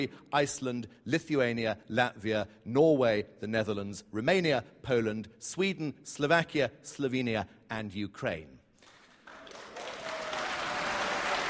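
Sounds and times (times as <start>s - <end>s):
speech: 0.0s - 8.6s
audience applause: 8.9s - 11.4s.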